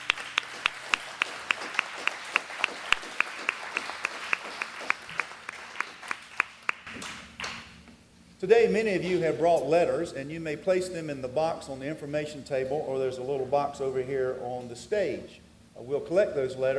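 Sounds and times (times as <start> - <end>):
audience hand clapping: 0.0 - 7.7
speech: 8.4 - 16.7.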